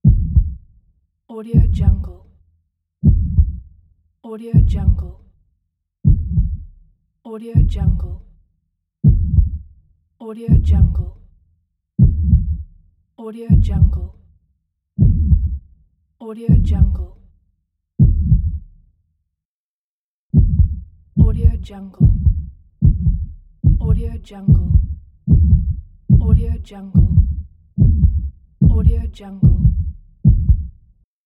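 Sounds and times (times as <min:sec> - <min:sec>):
normal heartbeat: 0:00.0 - 0:00.7, 0:01.6 - 0:02.2, 0:03.0 - 0:03.7, 0:04.6 - 0:05.2, 0:06.0 - 0:06.8, 0:07.6 - 0:08.3, 0:09.0 - 0:09.7, 0:10.5 - 0:11.2, 0:12.0 - 0:12.7, 0:13.5 - 0:14.1, 0:15.0 - 0:15.7, 0:16.5 - 0:17.2, 0:18.0 - 0:18.7, 0:20.3 - 0:30.8.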